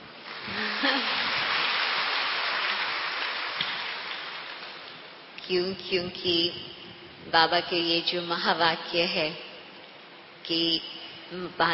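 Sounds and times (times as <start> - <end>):
audience applause: 0.3 - 4.8
speech: 5.5 - 9.5, 10.5 - 11.7.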